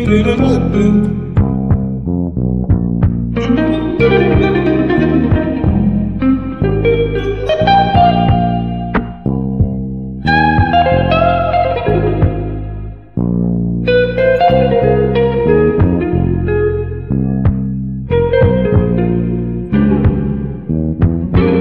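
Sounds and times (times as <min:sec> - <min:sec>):
vocals: 0:00.0 - 0:02.1, 0:03.4 - 0:06.1
drums: 0:00.0 - 0:12.6, 0:15.8 - 0:16.4, 0:17.4 - 0:17.7, 0:18.3 - 0:19.2, 0:19.8 - 0:21.6
bass: 0:00.0 - 0:21.6
guitar: 0:00.0 - 0:21.6.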